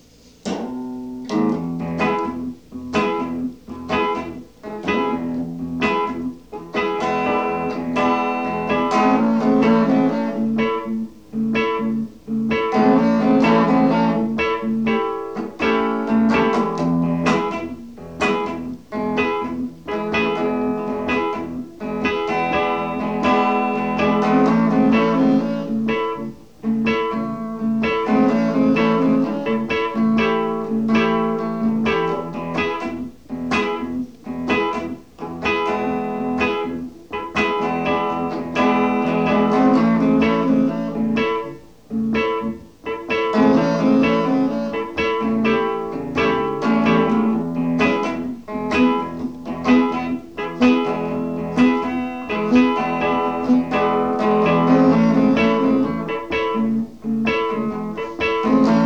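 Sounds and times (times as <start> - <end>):
reggae jam: 0.1 - 58.8.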